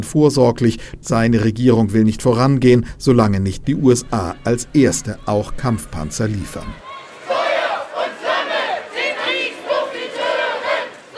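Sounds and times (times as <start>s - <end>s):
speech: 0.0s - 6.8s
crowd of demonstrators shouting in chant-like waves: 3.8s - 11.1s.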